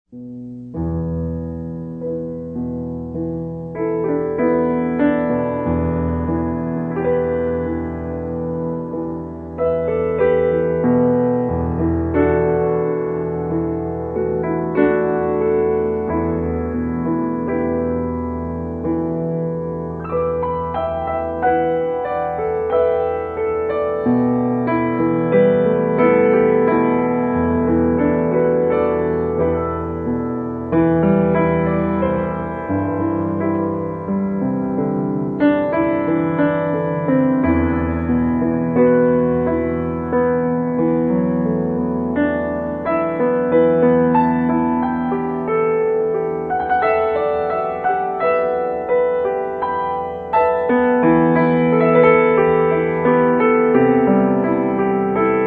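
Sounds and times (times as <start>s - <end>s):
piano: 0.0s - 55.4s.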